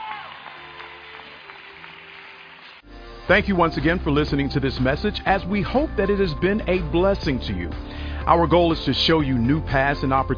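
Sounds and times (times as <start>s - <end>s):
audience clapping hands: 0.0s - 2.9s
speech: 3.3s - 10.3s.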